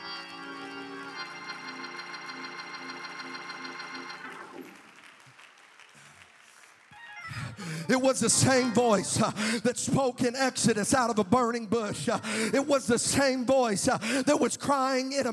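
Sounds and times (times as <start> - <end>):
loud sustained organ-like chord: 0.0 - 4.7
audience clapping hands: 0.0 - 8.6
speech: 7.6 - 15.3.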